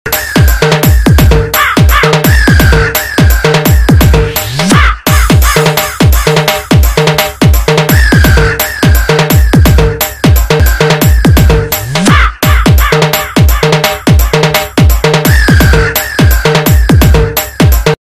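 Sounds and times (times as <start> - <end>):
DJ remix ringtone music: 0.1 - 17.9.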